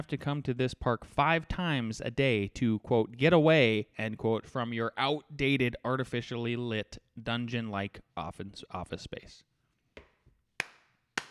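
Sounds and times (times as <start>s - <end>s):
speech: 0.0s - 9.5s
deliberate slow clap: 10.6s - 11.3s.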